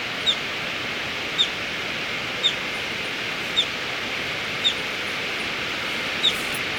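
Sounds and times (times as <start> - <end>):
violet-fronted brilliant calling with high single chips in Ecuador: 0.2 - 0.5, 1.3 - 1.6, 2.3 - 6.7.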